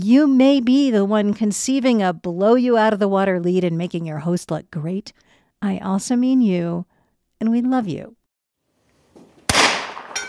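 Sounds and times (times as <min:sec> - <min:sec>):
speech: 0:00.0 - 0:08.2
gunshot: 0:09.5 - 0:10.2.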